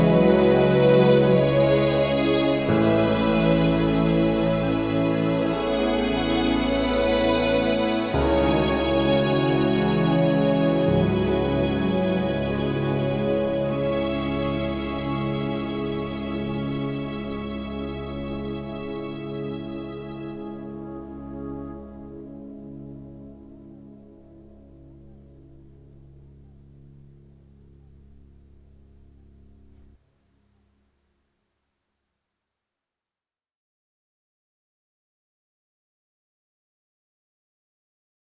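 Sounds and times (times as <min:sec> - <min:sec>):
symphonic version of a piece: 0:00.0 - 0:26.6.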